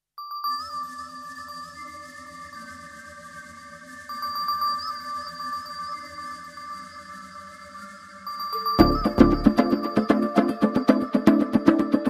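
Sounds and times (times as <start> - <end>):
Telugu background music ringtone: 8.7 - 12.0.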